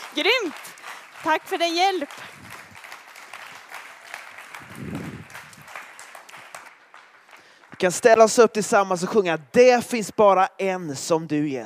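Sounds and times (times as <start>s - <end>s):
audience applause: 0.0s - 8.6s
speech: 0.2s - 2.4s, 7.8s - 11.6s.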